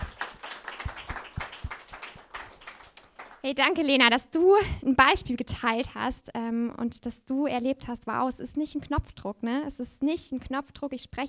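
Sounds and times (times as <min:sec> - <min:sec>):
people applauding: 0:00.0 - 0:03.5
speech: 0:03.4 - 0:11.2.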